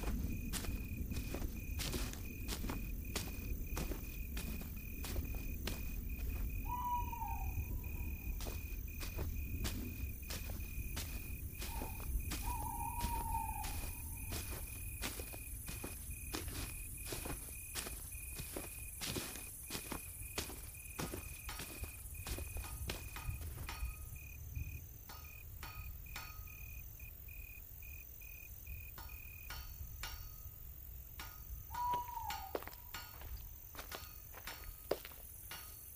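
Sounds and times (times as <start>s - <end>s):
high insect drone at night in a dark village: 0.0s - 35.9s
short falling calls: 6.6s - 8.4s, 11.6s - 14.5s, 31.7s - 32.9s.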